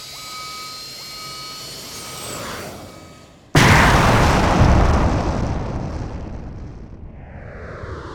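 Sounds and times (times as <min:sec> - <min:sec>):
kangaroo ship exploding: 0:03.6 - 0:08.1.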